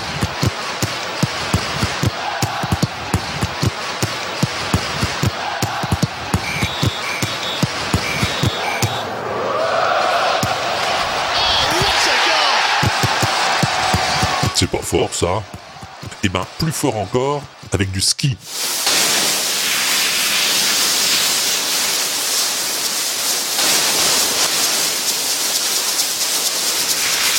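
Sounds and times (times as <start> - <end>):
football ball-kick thumps in a driving beat: 0.0 - 9.0, 12.8 - 14.6, 15.4 - 16.2
crowd-like wash: 0.0 - 27.3
short tonal pings: 6.4 - 9.0
speech: 14.9 - 18.8.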